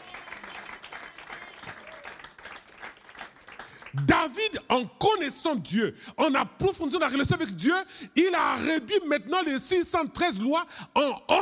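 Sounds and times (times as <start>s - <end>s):
audience applauding: 0.0s - 4.2s
speech: 3.9s - 11.4s.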